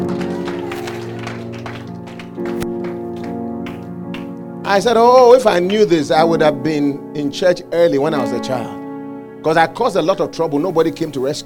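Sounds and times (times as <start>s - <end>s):
audience clapping: 0.0s - 4.5s, 5.5s - 5.9s
speech: 4.7s - 8.8s, 9.4s - 11.4s.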